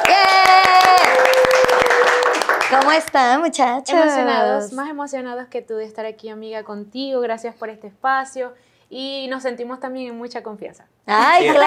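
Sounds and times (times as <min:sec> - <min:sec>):
audience applause: 0:00.0 - 0:03.1
speech: 0:02.7 - 0:11.6.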